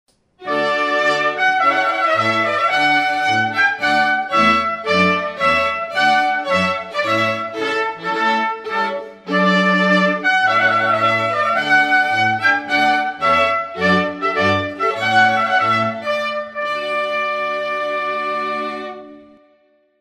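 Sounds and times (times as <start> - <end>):
trumpet piece: 0.4 - 19.8.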